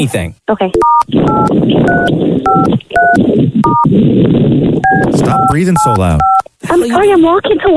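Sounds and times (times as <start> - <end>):
speech: 0.0 - 7.7
telephone keypad dialing beeps: 0.7 - 3.9, 4.8 - 6.4.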